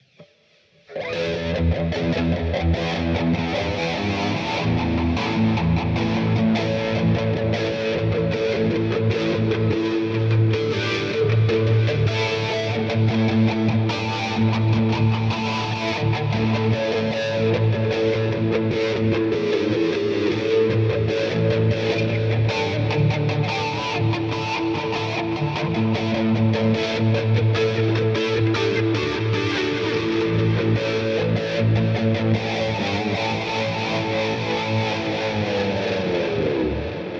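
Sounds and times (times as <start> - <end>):
Blackstar St. James shaky robot modded guitar amp: 0.9 - 37.1.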